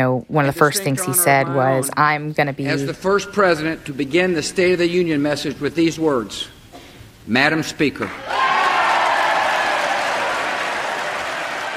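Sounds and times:
speech: 0.0s - 6.6s, 7.2s - 8.5s
lawmakers applauding in congress chamber: 8.0s - 11.7s.

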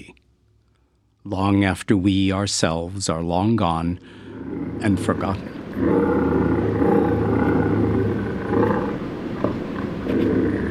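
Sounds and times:
speech: 1.2s - 4.2s, 4.8s - 6.4s
bobcat growling: 4.2s - 10.6s.

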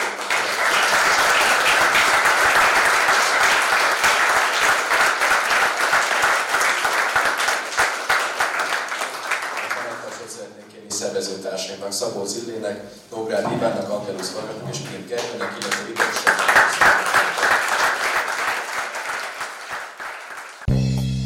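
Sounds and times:
crowd applause: 0.0s - 10.2s, 15.1s - 20.7s
speech: 12.3s - 16.1s.

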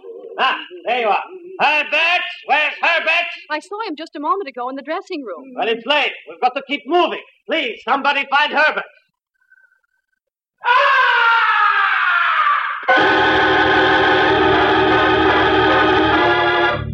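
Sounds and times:
speech: 0.4s - 2.8s, 3.5s - 9.0s
blood-curdling scream in an opera house: 10.6s - 16.8s.

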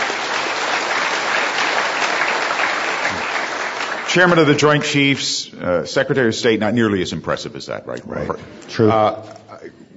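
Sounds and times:
audience applause for a couple's 50th wedding anniversary: 0.0s - 5.0s
speech: 4.2s - 9.8s.

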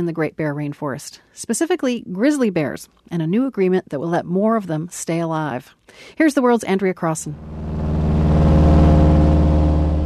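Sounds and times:
speech: 0.0s - 7.8s
tiny seaplane engine droning in flight: 7.4s - 10.0s.

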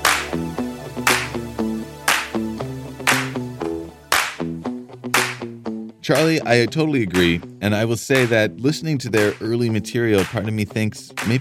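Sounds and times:
slow clap by one person in a bedroom: 0.0s - 5.6s, 7.1s - 7.5s, 8.1s - 8.5s, 9.2s - 10.5s, 11.1s - 11.3s
speech: 6.1s - 11.3s.

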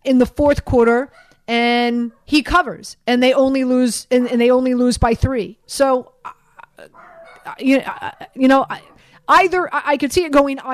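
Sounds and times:
speech: 0.0s - 10.7s
dogs barking: 1.1s - 2.4s, 6.9s - 9.2s
dogs whimpering: 6.8s - 9.2s.

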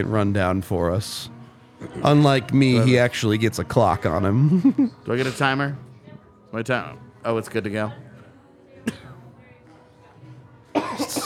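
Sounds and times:
speech: 0.0s - 5.9s, 6.5s - 8.1s
cough: 8.8s - 9.2s, 10.7s - 11.2s.

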